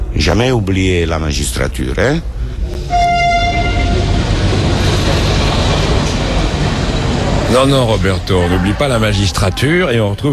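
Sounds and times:
rumble of rolling train wagons at Bologna railway station: 0:00.0 - 0:10.3
speech: 0:00.1 - 0:03.2, 0:07.5 - 0:10.3
train horn toot at Bologna railway station: 0:02.9 - 0:04.2.

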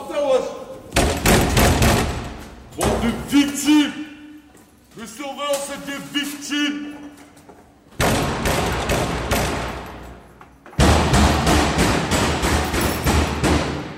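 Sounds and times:
inmate banging against cell door: 0:01.0 - 0:02.3, 0:08.0 - 0:09.8, 0:10.8 - 0:13.9
speech: 0:02.8 - 0:03.9, 0:05.0 - 0:07.0.

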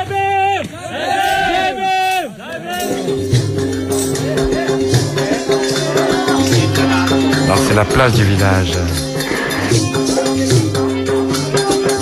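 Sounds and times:
village festival crowd babble: 0:00.6 - 0:12.0
village festival voices singing or chanting: 0:00.6 - 0:12.0
speech: 0:07.8 - 0:09.0.

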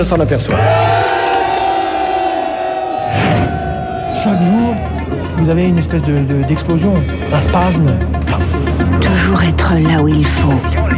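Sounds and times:
speech: 0:00.0 - 0:01.3, 0:04.2 - 0:10.9
protest crowd shouting in anger: 0:00.5 - 0:05.6.

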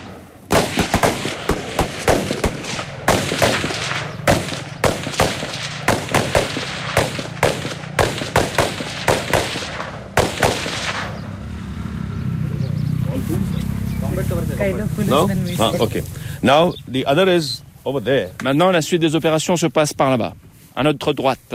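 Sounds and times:
gunfire from riders on motorcycles: 0:00.0 - 0:11.2
low steady engine-like rumble: 0:02.6 - 0:21.5
speech: 0:15.1 - 0:21.5.

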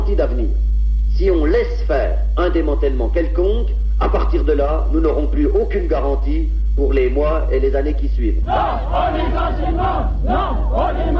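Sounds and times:
speech: 0:00.1 - 0:11.1
crowd of workers at a union protest at the IP site in Arquesenin shouting and jeering: 0:08.4 - 0:11.1.

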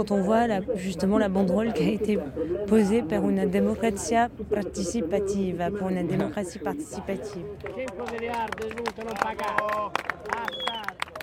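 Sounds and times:
speech: 0:00.0 - 0:11.0
crowd applauding: 0:07.6 - 0:11.2.

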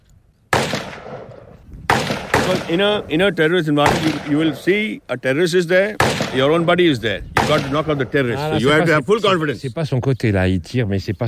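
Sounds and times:
single gunshot fired at a head-shot target in training: 0:00.5 - 0:03.0, 0:03.8 - 0:04.8, 0:06.0 - 0:06.6, 0:07.3 - 0:08.2
speech: 0:02.5 - 0:11.2.

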